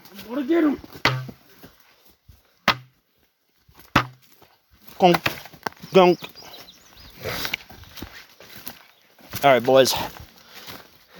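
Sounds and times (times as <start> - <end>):
speech: 0.2 - 1.1, 5.0 - 5.4, 6.0 - 6.4, 9.4 - 10.2
knock on a tree trunk: 1.0 - 1.4, 2.6 - 3.0, 3.9 - 4.2.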